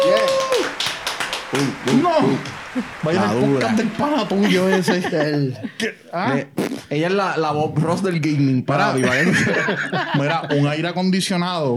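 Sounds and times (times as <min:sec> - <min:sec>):
applause for a guest: 0:00.0 - 0:04.4
speech: 0:01.5 - 0:11.7
laughter: 0:02.2 - 0:06.0, 0:08.9 - 0:10.9.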